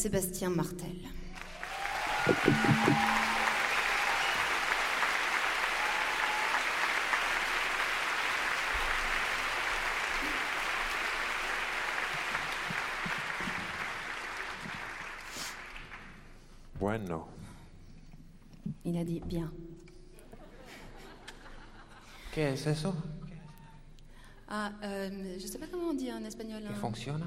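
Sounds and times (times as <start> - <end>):
speech: 0.0 - 1.2, 2.2 - 3.3, 19.0 - 19.6, 22.4 - 23.1, 24.5 - 27.2
sustained audience applause: 1.4 - 16.2
laughter: 2.0 - 3.7, 20.2 - 22.2
brief tonal sound: 2.4 - 3.7.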